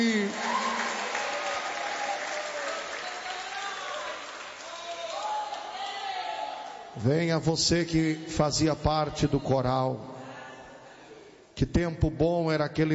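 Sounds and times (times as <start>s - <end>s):
audience applauding: 0.0s - 6.1s
speech: 7.0s - 10.1s, 11.6s - 12.9s.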